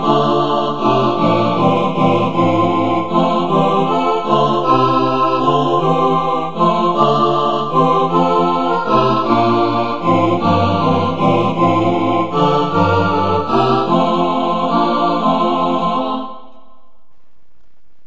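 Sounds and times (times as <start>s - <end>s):
SATB choir singing: 0.0s - 17.0s.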